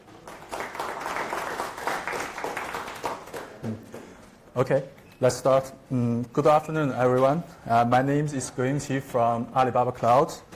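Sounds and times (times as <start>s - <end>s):
audience applause: 0.0s - 3.7s
speech: 3.6s - 3.9s, 4.6s - 10.5s.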